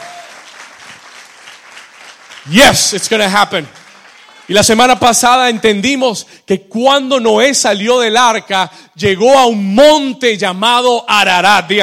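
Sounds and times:
audience applauding: 0:00.0 - 0:05.1
speech: 0:02.4 - 0:03.8, 0:04.5 - 0:11.8.

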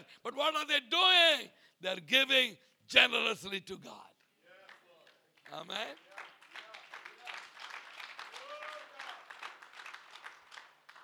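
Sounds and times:
speech: 0:00.1 - 0:04.1, 0:05.5 - 0:06.1
audience clapping: 0:04.5 - 0:11.0.

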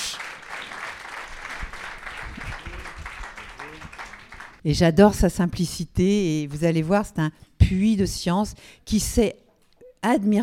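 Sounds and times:
audience applause: 0:00.0 - 0:04.6
speech: 0:04.6 - 0:09.4, 0:10.0 - 0:10.4.

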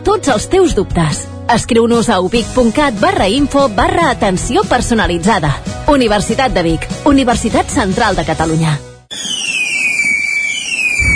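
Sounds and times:
speech: 0:00.1 - 0:08.9
firework high whistle gliding downward: 0:09.1 - 0:11.1.

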